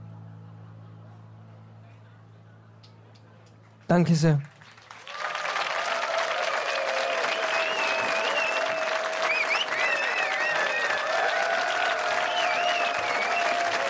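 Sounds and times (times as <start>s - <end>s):
speech: 3.9s - 4.5s
audience applause: 3.9s - 13.8s.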